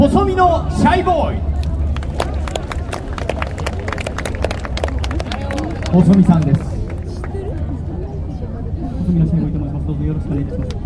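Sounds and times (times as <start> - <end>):
speech: 0.0 - 1.6, 5.9 - 6.7, 9.1 - 10.8
group clapping welcoming a guest: 1.6 - 7.4.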